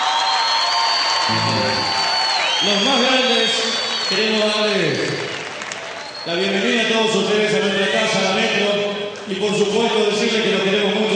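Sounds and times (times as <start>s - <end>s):
audience cheering: 0.0s - 4.4s
audience applause: 0.0s - 6.2s
speech: 2.6s - 5.2s, 6.3s - 11.1s.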